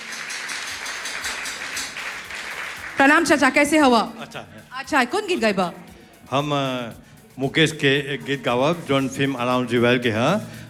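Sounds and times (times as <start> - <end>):
audience applause welcoming a performer onto a folk music stage: 0.0 - 3.0
speech: 3.0 - 10.6.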